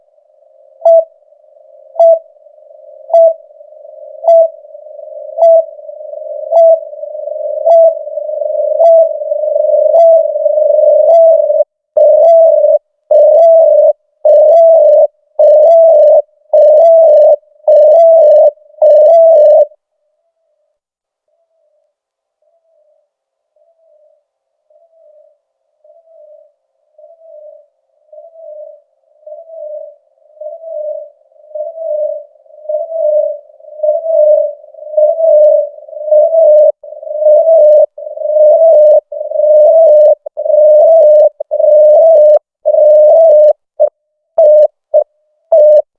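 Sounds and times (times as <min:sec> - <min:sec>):
DMD2000 feedback loop: 0:00.7 - 0:19.7, 0:29.3 - 0:43.5, 0:44.4 - 0:45.9.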